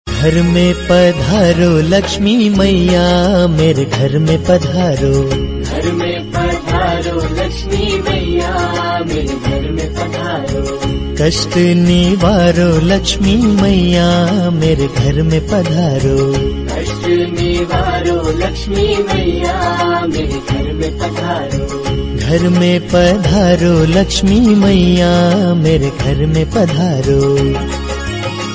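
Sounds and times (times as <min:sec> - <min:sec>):
Bhakti devotional song ringtone: 0:00.1 - 0:28.5.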